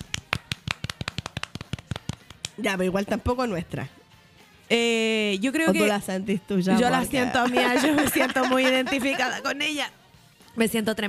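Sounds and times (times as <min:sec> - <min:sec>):
applause: 0:00.0 - 0:02.5
speech: 0:02.6 - 0:04.0, 0:04.7 - 0:10.0, 0:10.6 - 0:11.0
laughter: 0:07.0 - 0:09.5.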